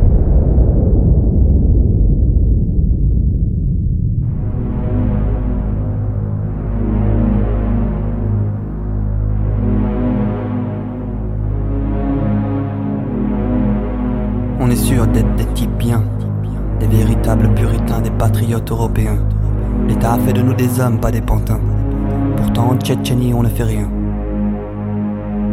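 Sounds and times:
bomb dropped from a plane exploding over Hiroshima: 0.0s - 6.6s
low throbbing drone: 0.0s - 25.5s
speech: 20.0s - 21.7s, 22.4s - 24.0s.

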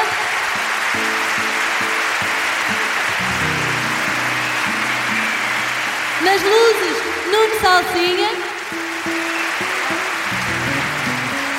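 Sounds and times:
audience applause: 0.0s - 11.5s
speech: 6.3s - 8.4s.

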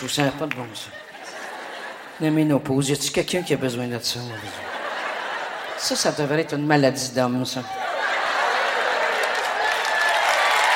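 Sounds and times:
speech: 0.0s - 1.1s, 2.2s - 4.8s, 5.8s - 7.9s
audience applause at a French-language stand-up comedy show: 0.0s - 2.0s, 7.8s - 10.7s
laughter: 0.0s - 10.7s.

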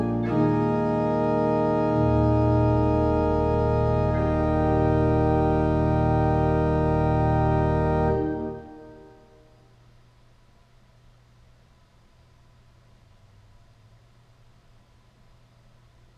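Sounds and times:
organ prelude in E-flat major: 0.0s - 9.4s.

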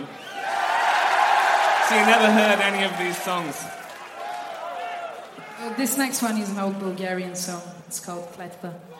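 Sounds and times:
applause: 0.3s - 7.4s.

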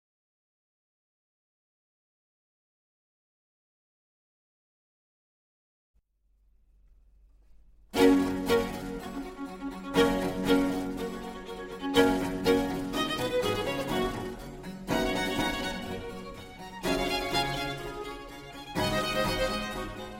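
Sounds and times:
two violins playing: 8.0s - 20.1s.

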